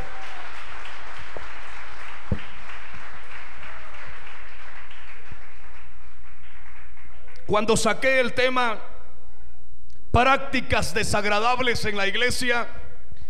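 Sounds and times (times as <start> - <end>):
audience clapping hands: 0.0 - 8.1
speech: 7.5 - 8.9, 10.1 - 12.8.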